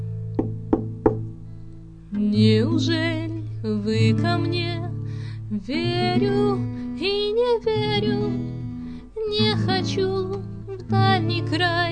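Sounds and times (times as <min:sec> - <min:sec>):
knocking on a door: 0:00.4 - 0:01.3
speech: 0:02.2 - 0:04.9, 0:05.5 - 0:08.6, 0:09.2 - 0:11.8.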